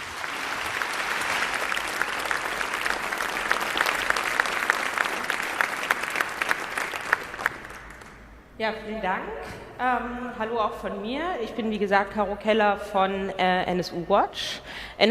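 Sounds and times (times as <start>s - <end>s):
audience applause: 0.0s - 8.3s
speech: 8.6s - 15.0s.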